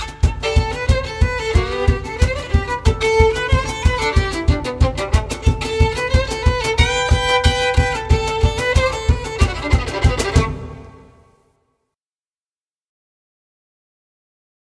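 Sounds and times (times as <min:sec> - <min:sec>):
violin: 0:00.0 - 0:11.3.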